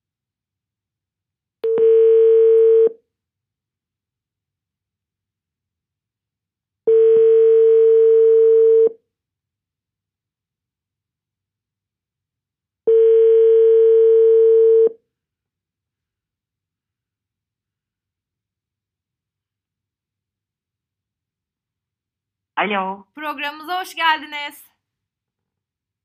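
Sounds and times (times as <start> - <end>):
telephone ringing tone while placing a call: 1.6 - 3.0, 6.9 - 9.0, 12.9 - 15.0
speech: 22.6 - 24.7.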